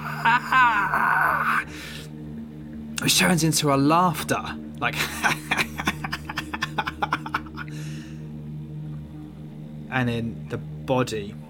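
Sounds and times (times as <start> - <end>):
voice imitating a monster's high-pitched screech: 0.0 - 1.7
steady low hum: 0.0 - 11.4
speech: 0.2 - 1.9, 3.0 - 5.7, 10.0 - 11.4
laughter: 5.0 - 7.7.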